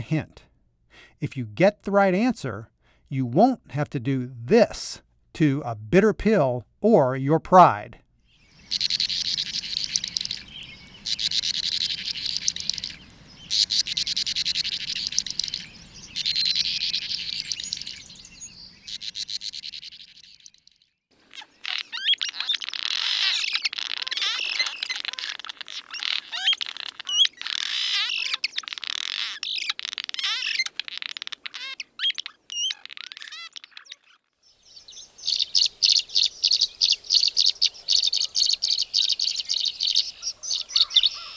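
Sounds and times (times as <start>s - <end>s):
speech: 0.0s - 8.0s, 8.7s - 9.1s
bank swallow calls: 8.2s - 20.6s, 21.2s - 41.3s.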